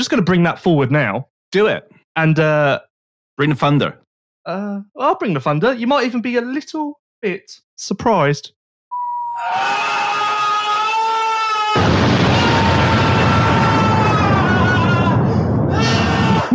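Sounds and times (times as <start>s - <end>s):
speech: 0.0s - 8.6s
man screaming: 9.4s - 16.5s
bomb explosion: 11.7s - 16.5s.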